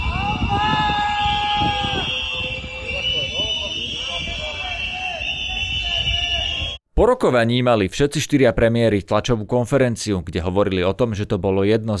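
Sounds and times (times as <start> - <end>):
crowd of protesters whistling: 0.0 - 6.8
speech: 7.0 - 11.9.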